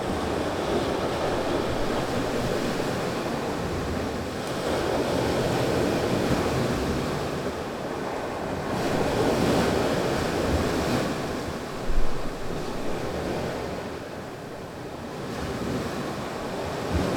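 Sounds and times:
waves recorded from a balcony in Curaçao with a Rode NT4: 0.0 - 17.1.

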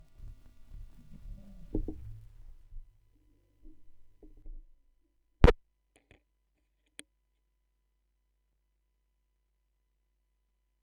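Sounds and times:
vinyl record noise: 0.0 - 2.6.

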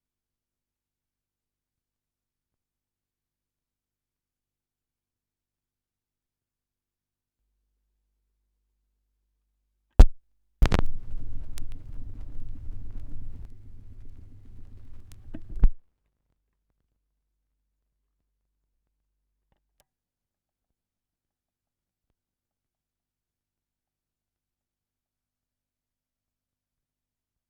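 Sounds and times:
78rpm record surface noise: 10.0 - 15.8.

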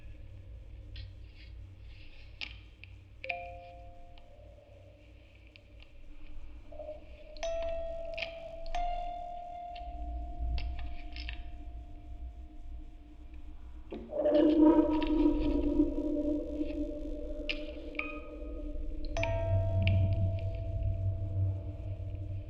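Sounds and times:
quartet of music boxes through a vocoder on tape: 7.2 - 11.6, 14.4 - 22.2.

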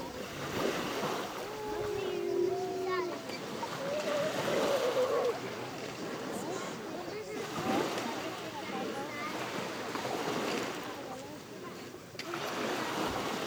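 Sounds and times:
beach ambience in Greece: 0.0 - 13.4.

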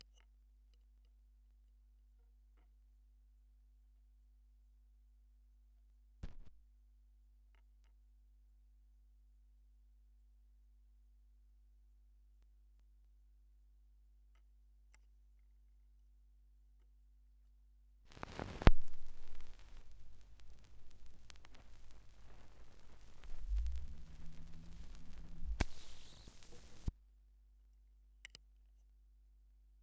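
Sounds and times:
vinyl record noise: 18.1 - 26.9.

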